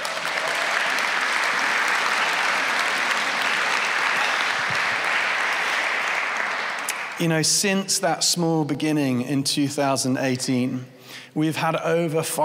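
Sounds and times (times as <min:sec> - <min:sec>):
audience applause: 0:00.0 - 0:07.4
speech: 0:07.2 - 0:12.4.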